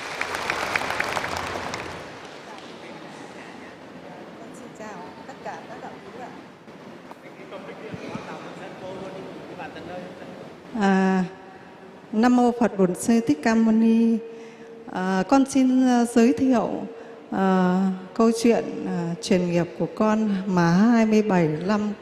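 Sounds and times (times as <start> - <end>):
audience at a Buddhist gathering clapping: 0.0 - 3.2
speech: 12.2 - 14.3, 14.9 - 22.0.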